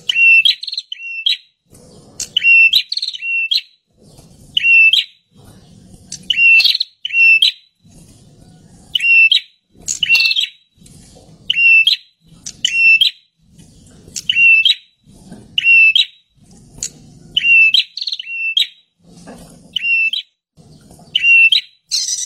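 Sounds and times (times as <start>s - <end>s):
bird calling with short whistled notes: 0.0s - 1.6s, 2.2s - 3.8s, 4.5s - 5.2s, 6.2s - 7.7s, 8.9s - 10.6s, 11.5s - 13.3s, 14.2s - 14.9s, 15.6s - 16.2s, 17.4s - 18.9s, 19.8s - 20.3s, 21.1s - 22.2s.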